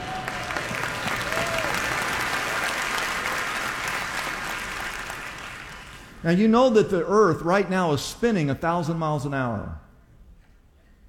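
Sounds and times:
crowd applauding: 0.0 - 6.2
speech: 6.2 - 9.8.

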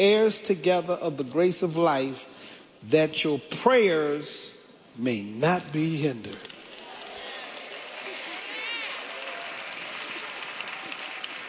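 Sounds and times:
speech: 0.0 - 6.6
sisters clapping: 6.5 - 11.4.

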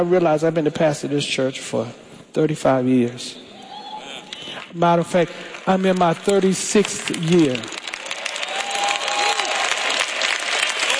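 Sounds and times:
speech: 0.0 - 3.5, 4.5 - 7.8
audience clapping: 4.3 - 10.9.

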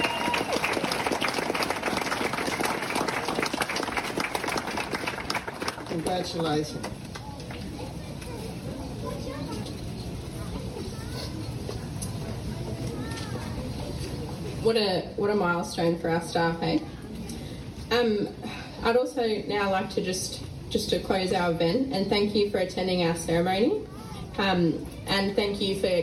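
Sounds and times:
audience clapping: 0.0 - 7.7
murmur of voices: 0.0 - 26.0
speech: 6.1 - 7.0, 14.7 - 16.9, 18.0 - 26.0.

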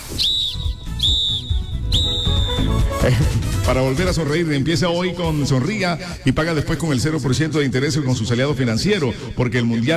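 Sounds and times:
referee's final whistle: 0.0 - 2.9
speech: 3.0 - 9.9.

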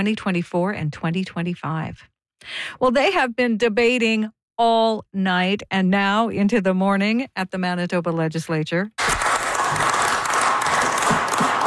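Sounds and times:
speech: 0.0 - 9.1
tired scattered clapping from legislators in a provincial legislature chamber: 9.0 - 11.6.

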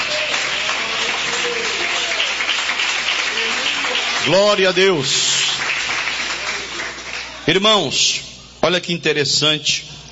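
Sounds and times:
audience clapping loudly: 0.0 - 7.6
speech: 4.2 - 5.3, 7.5 - 9.9.

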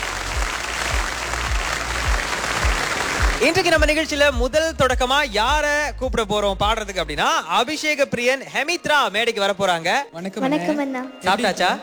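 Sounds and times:
audience applause: 0.0 - 3.9
speech: 3.4 - 11.8.

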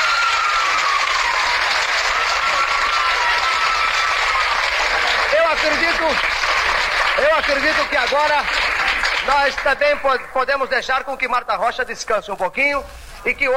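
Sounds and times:
audience applause: 0.0 - 10.5
speech: 5.6 - 8.6, 9.2 - 13.5.

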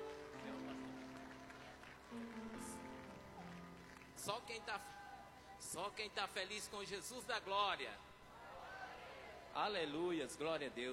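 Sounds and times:
audience clapping to welcome singer: 0.0 - 5.1
speech: 4.2 - 5.0, 5.6 - 8.1, 9.5 - 10.9.

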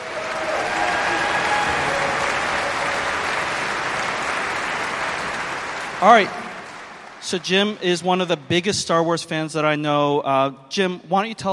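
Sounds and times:
audience applause: 0.0 - 8.6
speech: 6.0 - 6.4, 7.2 - 11.5.

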